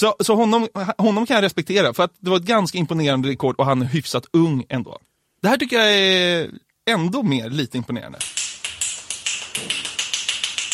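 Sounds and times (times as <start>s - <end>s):
speech: 0.0s - 8.4s
rapid hand clapping: 8.2s - 10.7s.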